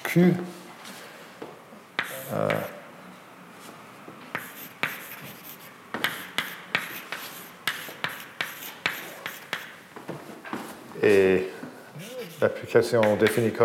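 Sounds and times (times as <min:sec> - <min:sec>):
speech: 0:00.1 - 0:00.6, 0:02.3 - 0:02.7, 0:12.7 - 0:13.6
writing on a board during a mathematics explanation: 0:02.0 - 0:02.8, 0:04.3 - 0:09.8, 0:12.0 - 0:13.4.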